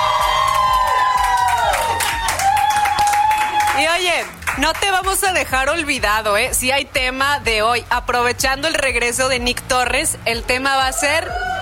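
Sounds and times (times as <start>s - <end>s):
crowd shouting and cheering: 0.0s - 4.0s, 10.8s - 11.6s
speech: 4.6s - 11.4s.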